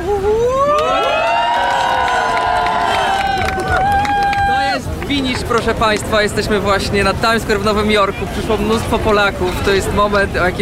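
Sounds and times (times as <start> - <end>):
crowd cheering and shouting: 0.5 - 5.0
speech: 5.5 - 10.6.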